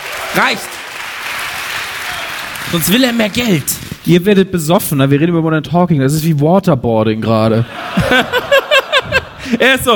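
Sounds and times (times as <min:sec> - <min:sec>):
audience applause: 0:00.0 - 0:03.7
speech: 0:00.4 - 0:00.8, 0:02.7 - 0:08.5, 0:09.5 - 0:09.9
laughter: 0:07.6 - 0:09.8.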